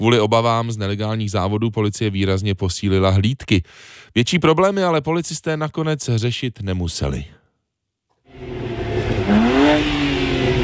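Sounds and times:
speech: 0.0s - 7.4s
tuned car engines revving: 8.3s - 10.6s.

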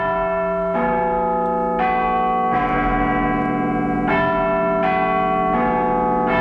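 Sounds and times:
clock tower bells chiming a melody: 0.0s - 6.3s.

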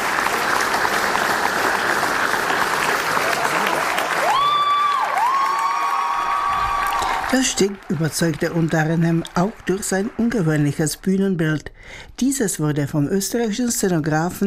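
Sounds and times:
young audience applauding during a theatre dress rehearsal: 0.0s - 11.0s
speech: 7.3s - 14.4s.

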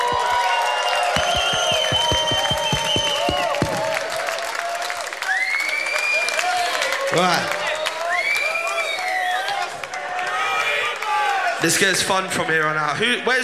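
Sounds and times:
rhythmic clapping: 0.0s - 4.6s
gig audience applauding: 0.0s - 11.4s
high whistles and whoops: 0.2s - 4.1s, 5.2s - 9.7s
speech: 11.6s - 13.4s.

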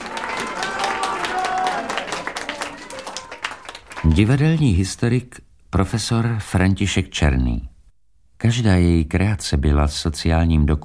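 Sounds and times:
theatre audience applause: 0.0s - 4.7s
speech: 4.1s - 7.7s, 8.4s - 10.8s.

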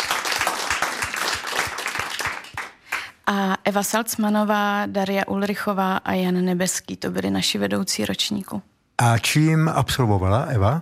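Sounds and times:
applause: 0.0s - 3.3s
speech: 3.3s - 10.7s.

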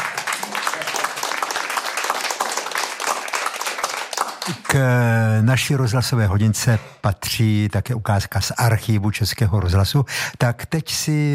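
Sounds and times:
crowd applauding: 0.0s - 5.0s
speech: 4.5s - 11.3s.

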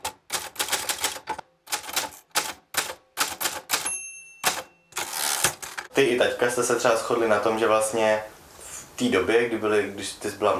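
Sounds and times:
old mechanical typewriter keystrokes: 0.0s - 5.9s
typewriter bell ring: 3.4s - 5.4s
speech: 6.0s - 8.4s, 9.0s - 10.5s.

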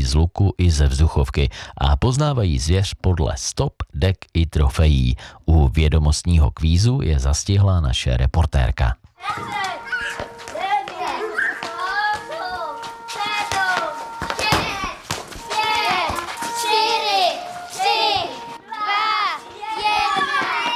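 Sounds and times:
speech: 0.1s - 9.9s
crowd of children chattering and calling out: 9.2s - 20.7s.

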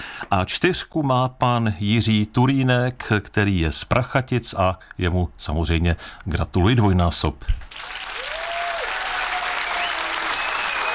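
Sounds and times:
speech: 0.3s - 7.7s
applause for the weekly winner: 7.6s - 10.9s.

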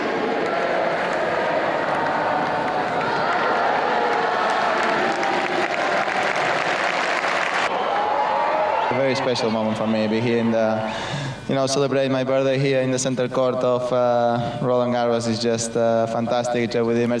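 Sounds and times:
murmuring voices: 0.0s - 7.0s
tennis stadium crowd applauding: 0.0s - 10.3s
speech: 9.1s - 17.1s.

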